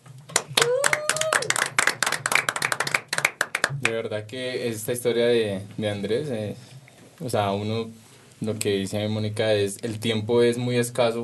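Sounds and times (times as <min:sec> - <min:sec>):
audience applause: 0:00.4 - 0:03.8
speech: 0:03.9 - 0:11.2.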